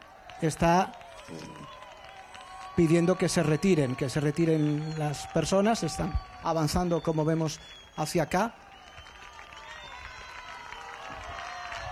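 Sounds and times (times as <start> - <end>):
neighbours applauding: 0.0 - 11.8
speech: 0.4 - 1.8, 2.8 - 8.6.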